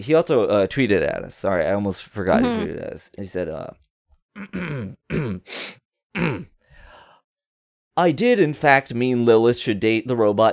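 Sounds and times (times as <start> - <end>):
speech: 0.0 - 6.5, 8.0 - 10.5
throat clearing: 4.4 - 5.5, 6.2 - 6.6
breathy exhale: 6.6 - 7.2.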